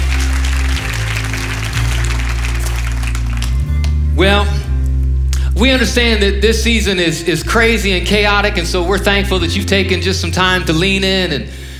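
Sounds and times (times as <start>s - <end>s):
applause for a church worship and production team at a Christmas service: 0.0s - 4.0s
low sustained musical tone: 0.0s - 11.7s
speech: 4.2s - 4.6s, 5.6s - 11.6s.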